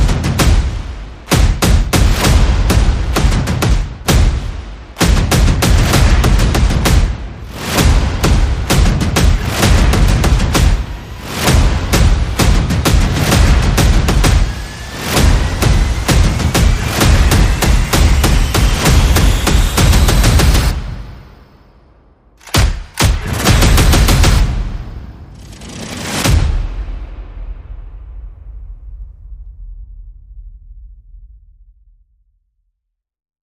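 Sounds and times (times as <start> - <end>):
percussion: 0.0 - 21.2, 22.4 - 29.2
sound effects: 1.3 - 27.6.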